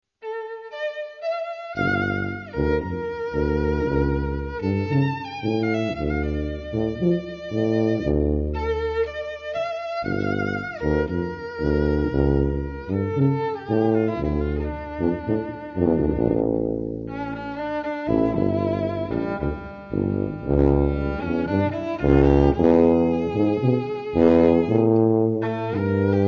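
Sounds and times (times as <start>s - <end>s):
tango music: 1.8s - 9.0s, 10.2s - 26.2s.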